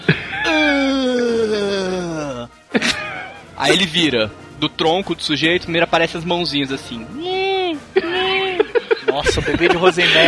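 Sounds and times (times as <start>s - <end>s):
person imitating moaning groan: 0.4s - 3.5s
laughter: 2.7s - 3.8s, 8.0s - 10.2s
speech: 3.6s - 7.3s, 9.3s - 10.2s.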